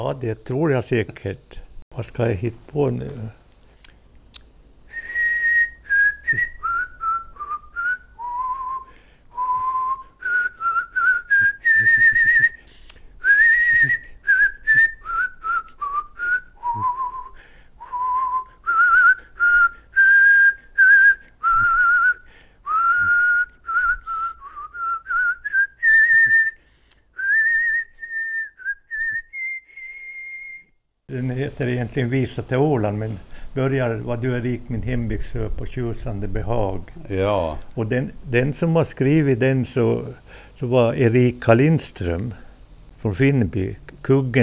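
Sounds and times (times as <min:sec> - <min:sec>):
speech: 0:00.0 - 0:03.4, 0:06.3 - 0:06.5, 0:31.6 - 0:42.4, 0:43.0 - 0:44.4
man whistling a folk melody alone: 0:04.9 - 0:30.8
breaths: 0:08.8 - 0:09.3, 0:12.6 - 0:13.2, 0:17.3 - 0:17.9, 0:22.2 - 0:22.7, 0:26.6 - 0:27.1, 0:33.2 - 0:33.6, 0:40.2 - 0:40.6.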